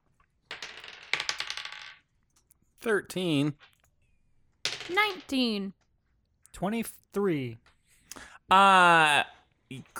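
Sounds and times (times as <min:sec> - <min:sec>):
dice rolling on a hard tabletop: 0:00.2 - 0:02.5, 0:04.6 - 0:05.5
speech: 0:02.8 - 0:03.7, 0:04.9 - 0:05.8, 0:06.6 - 0:09.9.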